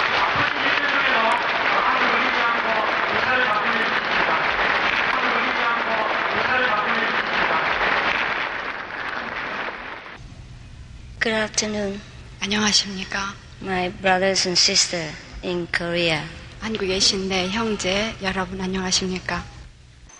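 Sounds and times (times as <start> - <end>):
audience applause welcoming speaker: 0.0 - 10.2
speech: 11.4 - 19.5.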